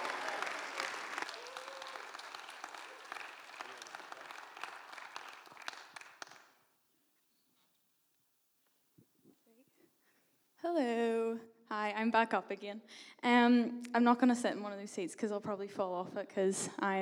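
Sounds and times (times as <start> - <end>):
audience applause: 0.0 - 6.6
speech: 11.9 - 17.0.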